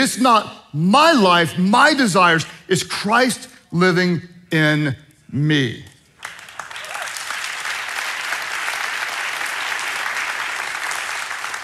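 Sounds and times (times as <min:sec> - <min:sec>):
speech: 0:00.0 - 0:05.9
audience clapping: 0:06.2 - 0:11.6.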